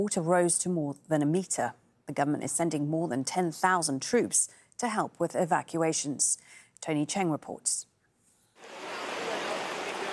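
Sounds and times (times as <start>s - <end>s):
speech: 0.0s - 7.9s
heavy downpour of rain over flooded Bangkok near the international airport: 8.6s - 10.1s.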